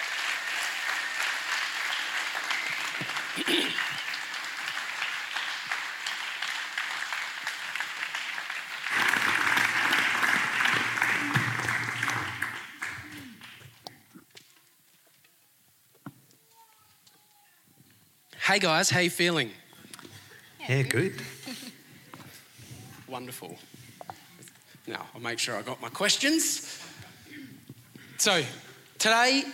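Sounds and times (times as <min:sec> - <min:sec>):
audience applause: 0:00.0 - 0:13.9
speech: 0:03.0 - 0:04.0, 0:18.5 - 0:19.6, 0:20.7 - 0:21.4, 0:23.2 - 0:23.7, 0:24.9 - 0:26.7, 0:28.2 - 0:29.5.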